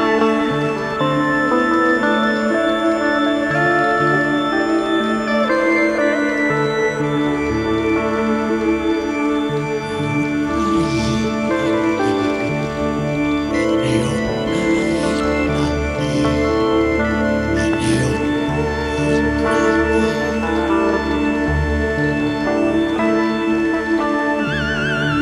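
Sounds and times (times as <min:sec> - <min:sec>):
theremin: 0:00.0 - 0:25.1.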